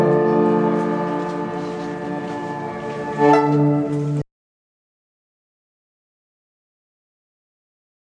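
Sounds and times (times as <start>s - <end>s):
piano trio: 0.0s - 4.2s.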